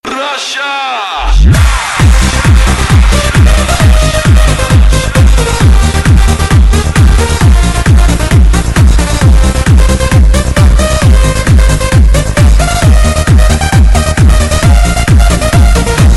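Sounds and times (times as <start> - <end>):
Russian techno music: 0.0 - 16.1.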